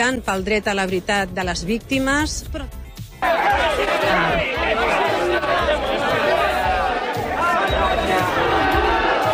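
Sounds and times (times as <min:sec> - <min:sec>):
speech: 0:00.0 - 0:05.9
large crowd shouting and chanting: 0:03.2 - 0:09.3.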